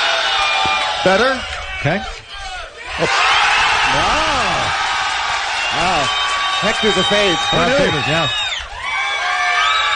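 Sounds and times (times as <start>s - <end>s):
audience cheering: 0.0s - 9.9s
speech: 1.0s - 2.2s, 3.0s - 3.3s, 3.9s - 4.8s, 5.7s - 8.4s
audience applause: 3.0s - 9.9s.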